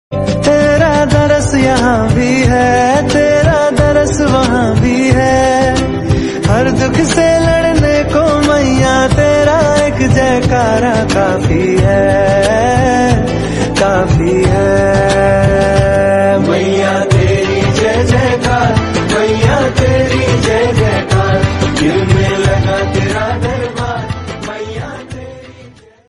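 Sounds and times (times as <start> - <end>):
bhakti ringtone: 0.7 - 25.0.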